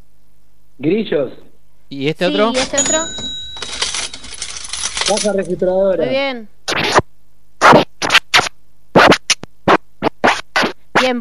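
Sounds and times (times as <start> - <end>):
speech: 0.8 - 3.3, 5.1 - 6.6
record scratch: 6.7 - 11.1.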